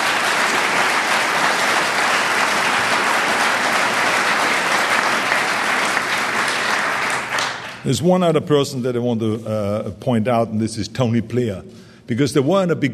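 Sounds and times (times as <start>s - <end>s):
audience applause: 0.0s - 7.9s
speech: 7.8s - 12.9s.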